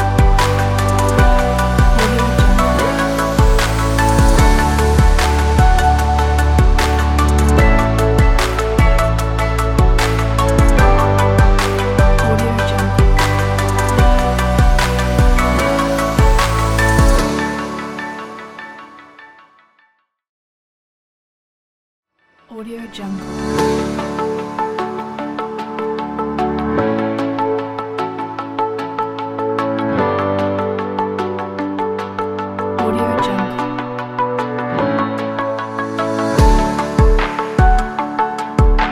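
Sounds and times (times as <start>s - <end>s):
happy corporate piano music: 0.0s - 18.5s, 23.6s - 38.9s.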